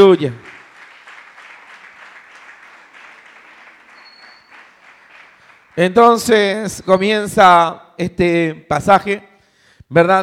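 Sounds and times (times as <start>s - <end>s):
speech: 0.0s - 0.6s, 5.8s - 9.3s, 9.9s - 10.2s
church congregation applauding: 0.0s - 6.9s.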